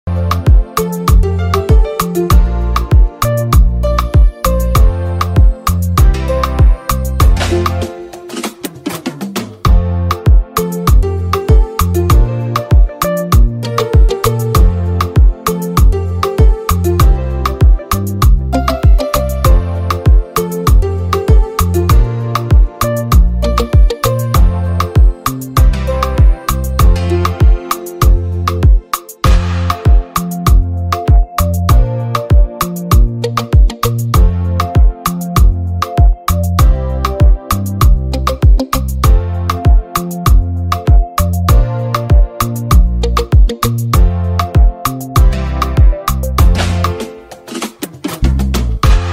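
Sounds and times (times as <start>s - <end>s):
regular instrumental music: 0.0s - 49.1s.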